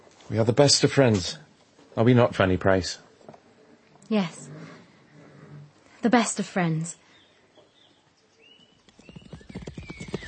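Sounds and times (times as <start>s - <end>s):
speech: 0.3s - 3.0s, 4.1s - 4.6s, 6.0s - 7.0s
hoofbeats of a horse being ridden: 8.6s - 10.2s.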